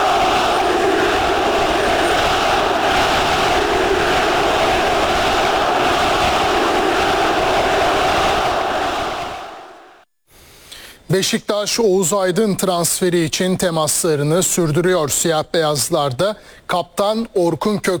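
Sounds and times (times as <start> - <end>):
football fans chanting at a player's signing ceremony: 0.0 - 10.0
speech: 11.1 - 17.9.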